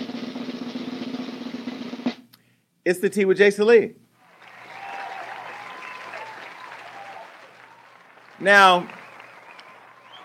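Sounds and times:
speech: 0:02.9 - 0:04.0, 0:08.4 - 0:09.0
studio audience applause: 0:04.2 - 0:10.2.

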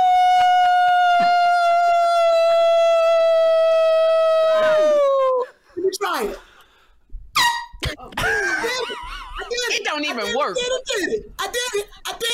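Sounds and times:
person imitating a wolf howl: 0:00.0 - 0:05.5
laughter: 0:08.1 - 0:11.3
excited talking and chatter: 0:08.8 - 0:12.3.

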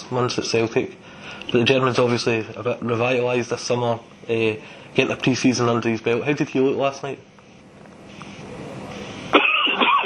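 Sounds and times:
speech: 0:00.1 - 0:07.3
man coughing from something caught in the back of his throat: 0:09.3 - 0:10.0
man clearing his throat: 0:09.4 - 0:10.0.

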